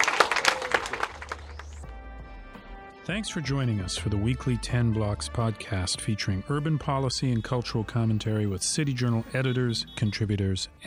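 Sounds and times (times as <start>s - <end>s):
audience applause: 0.0s - 1.8s
speech: 3.1s - 10.8s.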